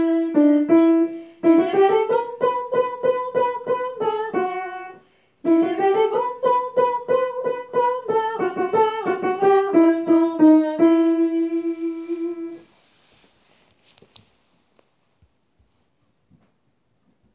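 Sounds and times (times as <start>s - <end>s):
soprano singing: 0.0s - 12.6s.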